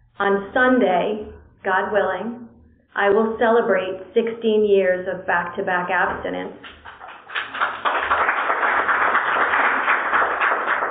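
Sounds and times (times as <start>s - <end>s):
speech: 0.2s - 2.4s, 3.0s - 6.8s
crowd applauding: 6.7s - 10.8s.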